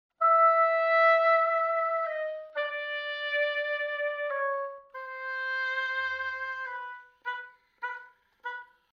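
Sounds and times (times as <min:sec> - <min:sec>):
oboe: 0:00.2 - 0:08.9.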